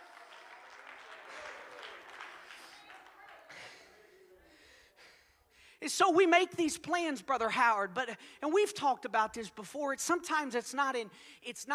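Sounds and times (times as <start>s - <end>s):
audience clapping: 0.0s - 4.0s
speech: 5.8s - 11.7s.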